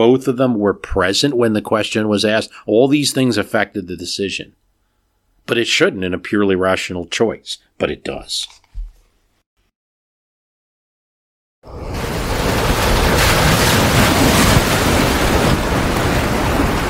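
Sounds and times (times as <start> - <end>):
speech: 0.0 - 4.6, 5.5 - 8.6
ocean waves around a tossing ship: 11.7 - 16.8.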